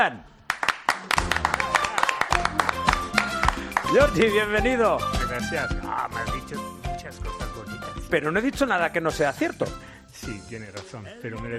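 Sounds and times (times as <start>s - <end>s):
speech: 0.0s - 0.3s, 3.9s - 11.5s
welcoming audience ovation: 0.5s - 4.3s.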